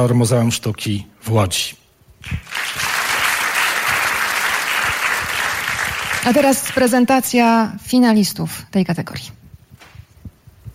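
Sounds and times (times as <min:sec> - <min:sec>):
speech: 0:00.0 - 0:02.6, 0:06.2 - 0:09.4
crowd applause: 0:02.2 - 0:07.0.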